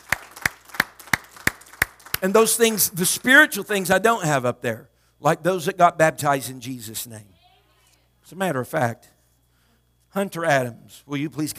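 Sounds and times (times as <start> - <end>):
audience clapping hands in unison: 0.0 - 2.6
speech: 2.2 - 7.4, 8.2 - 9.2, 10.1 - 11.5.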